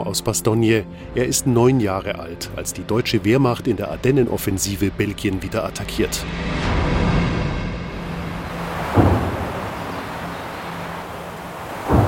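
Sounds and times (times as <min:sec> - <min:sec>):
speech: 0:00.1 - 0:06.9
gunshots echoing through the forest near Rocherath: 0:08.5 - 0:12.0.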